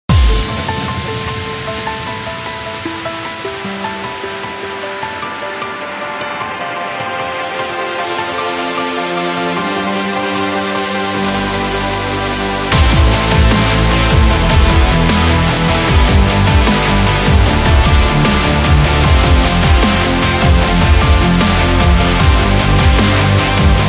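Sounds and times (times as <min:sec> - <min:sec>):
symphonic metal music: 0:00.1 - 0:23.8.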